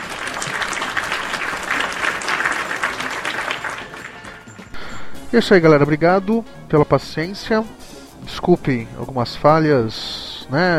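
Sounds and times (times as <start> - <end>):
audience applause: 0.0 - 4.8
speech: 5.3 - 10.7.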